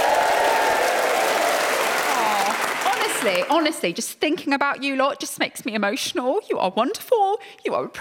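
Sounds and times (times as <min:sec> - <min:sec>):
studio audience applauding at a radio recording: 0:00.0 - 0:03.8
speech: 0:03.2 - 0:07.9.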